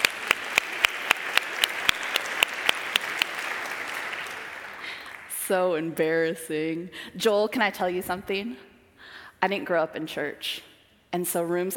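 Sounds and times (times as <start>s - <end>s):
audience clapping: 0.0s - 5.9s
speech: 5.5s - 8.7s, 9.4s - 11.7s.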